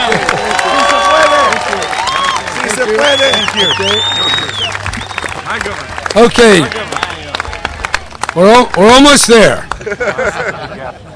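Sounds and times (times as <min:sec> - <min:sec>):
laughter: 0:00.0 - 0:01.8, 0:09.7 - 0:11.1
people whistling: 0:00.0 - 0:05.6
crowd clapping welcoming governor Jerry Brown: 0:00.0 - 0:10.5
speech: 0:03.6 - 0:04.2, 0:05.6 - 0:06.9, 0:08.4 - 0:11.1.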